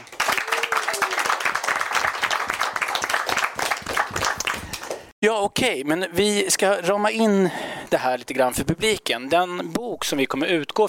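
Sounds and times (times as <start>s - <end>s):
audience applause: 0.0s - 5.1s
speech: 5.2s - 10.8s.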